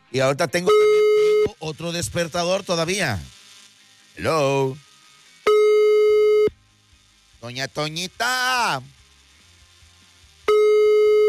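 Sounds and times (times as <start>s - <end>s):
speech: 0.1s - 1.0s, 1.6s - 3.4s, 4.2s - 4.9s, 7.4s - 9.0s
telephone busy signal after dialing: 0.7s - 1.6s, 5.5s - 6.5s, 10.5s - 11.2s.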